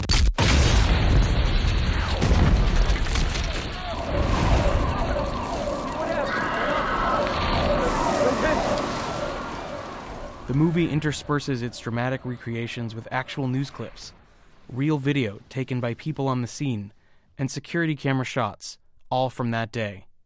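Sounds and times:
bomb exploding at a marathon: 0:00.2 - 0:12.3
sirens wailing: 0:03.3 - 0:14.0
chaotic roaring noise: 0:03.6 - 0:10.6
speech: 0:10.6 - 0:20.1.

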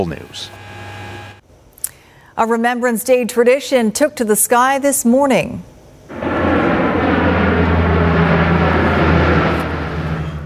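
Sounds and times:
speech: 0:00.0 - 0:00.6, 0:02.4 - 0:06.2
Lockheed CP-140 Aurora aircraft flyby over a Vancouver veterans care home: 0:06.1 - 0:10.4.

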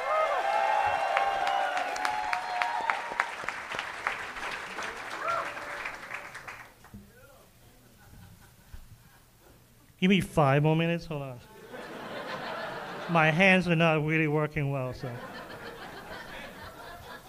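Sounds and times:
live stand-up comedy audience cheering and applauding: 0:00.0 - 0:06.8
laughter: 0:07.7 - 0:09.3, 0:11.5 - 0:13.4, 0:15.0 - 0:17.2
speech: 0:10.0 - 0:11.5, 0:13.1 - 0:15.3.

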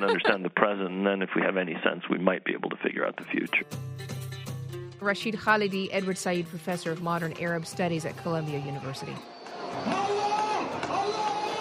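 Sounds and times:
laughter: 0:00.0 - 0:00.5
speech: 0:00.0 - 0:04.2, 0:05.0 - 0:10.1
crowds celebrating in Tahrir Square: 0:07.5 - 0:11.5.

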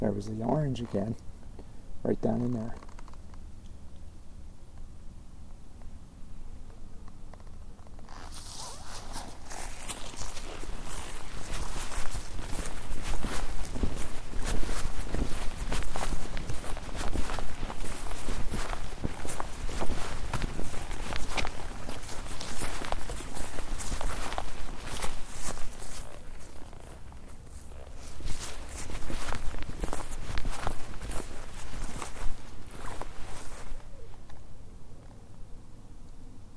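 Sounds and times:
speech: 0:00.0 - 0:01.4, 0:02.0 - 0:02.9
crunchy footsteps of someone walking through trees at night: 0:06.6 - 0:34.6.

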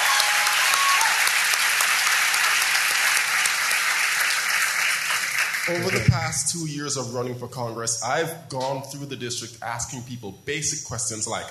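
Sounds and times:
audience applause: 0:00.0 - 0:06.2
speech: 0:05.7 - 0:11.4.

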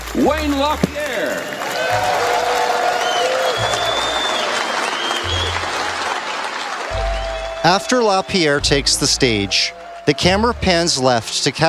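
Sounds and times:
large audience applauding at a meeting: 0:00.0 - 0:11.6
speech: 0:00.1 - 0:02.4, 0:07.6 - 0:11.6
faint whoops: 0:01.6 - 0:06.2, 0:06.9 - 0:10.6.

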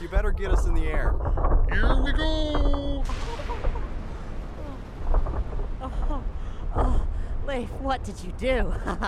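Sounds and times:
building collapsing after explosions: 0:00.0 - 0:09.0
speech: 0:00.1 - 0:02.8, 0:07.5 - 0:09.0.

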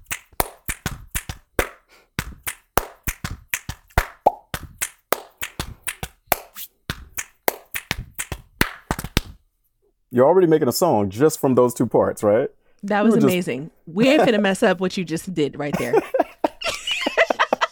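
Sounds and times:
rhythmic hand hits, finger snaps and claps in a repeating groove: 0:00.0 - 0:09.4
speech: 0:10.1 - 0:16.2
laughter: 0:14.0 - 0:14.5, 0:15.7 - 0:17.7.

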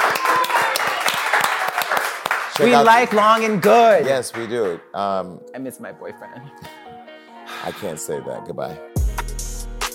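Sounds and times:
people clapping: 0:00.0 - 0:04.9
speech: 0:02.6 - 0:06.7, 0:07.6 - 0:08.9.

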